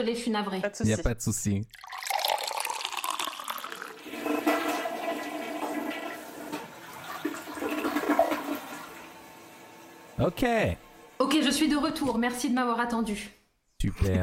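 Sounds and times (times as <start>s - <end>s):
speech: 0.0s - 1.9s, 10.2s - 14.2s
toilet flushing: 1.7s - 11.6s.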